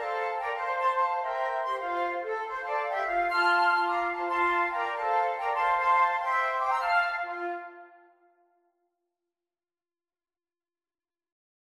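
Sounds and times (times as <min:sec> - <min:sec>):
jazz arrangement of a Christmas carol: 0:00.0 - 0:07.9.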